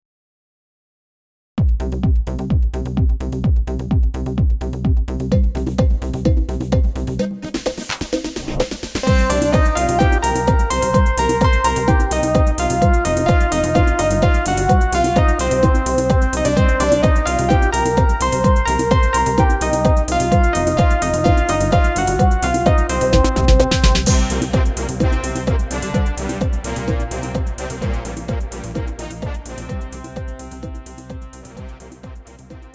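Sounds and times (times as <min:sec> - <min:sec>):
cha cha music: 0:01.6 - 0:32.7.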